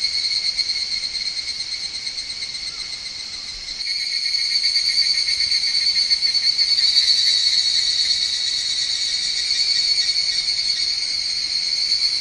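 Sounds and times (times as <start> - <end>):
Higurashi cicada call with high metallic trill: 0.0 - 12.1.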